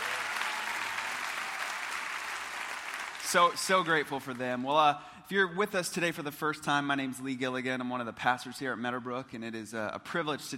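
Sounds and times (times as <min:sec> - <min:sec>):
audience applauding: 0:00.0 - 0:04.6
speech: 0:03.3 - 0:10.5.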